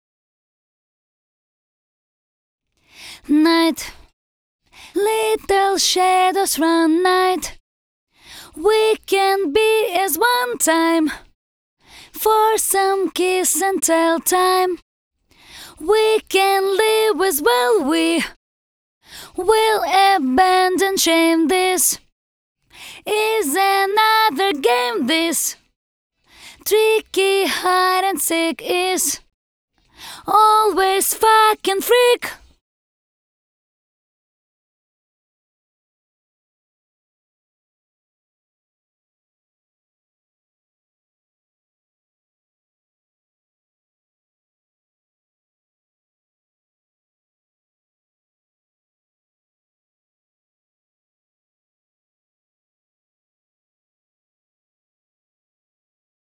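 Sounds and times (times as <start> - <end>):
English a cappella vocals: 2.8 - 4.1, 4.7 - 7.6, 8.2 - 18.4, 19.0 - 22.1, 22.7 - 25.7, 26.3 - 29.3, 29.9 - 32.6.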